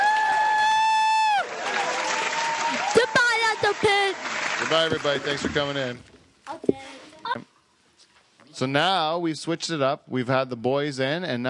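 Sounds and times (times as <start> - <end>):
round of applause: 0.0 - 5.5
speech: 4.0 - 6.1, 8.6 - 11.4.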